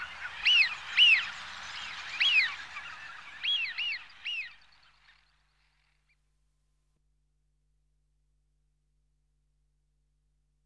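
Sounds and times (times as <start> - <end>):
large flock of wigeon Anas penelope: 0.0 - 4.8.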